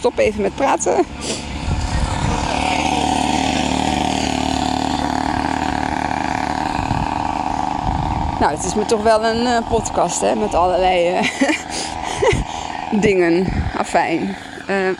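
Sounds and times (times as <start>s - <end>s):
speech: 0.0s - 1.5s, 8.4s - 14.9s
mopeds driving past: 0.0s - 14.9s
laughter: 11.1s - 13.0s.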